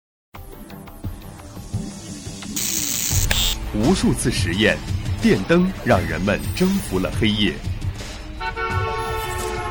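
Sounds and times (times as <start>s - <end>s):
speech: 3.7s - 7.7s
car horn honk: 8.4s - 9.6s.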